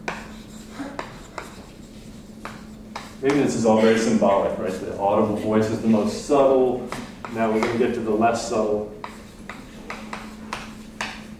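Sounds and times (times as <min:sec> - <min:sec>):
coloured pens scratching while writing: 0:00.1 - 0:03.4
speech: 0:03.2 - 0:08.9.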